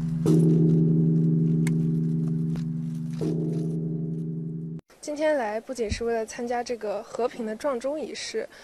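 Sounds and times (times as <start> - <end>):
large memorial bell being struck: 0.0 - 4.8
speech: 5.1 - 8.6.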